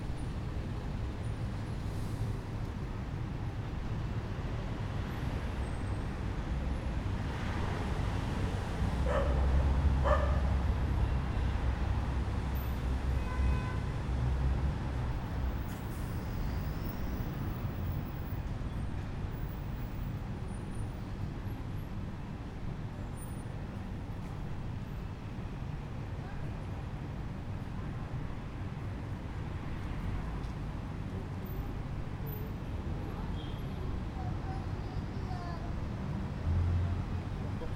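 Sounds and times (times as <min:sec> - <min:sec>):
small city main street ambience: 0:00.0 - 0:37.7
dog: 0:09.0 - 0:10.5.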